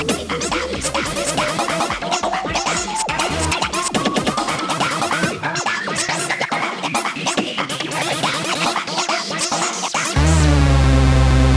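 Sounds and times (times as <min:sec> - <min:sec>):
drums: 0:00.0 - 0:11.5
hoover synth: 0:10.2 - 0:11.5.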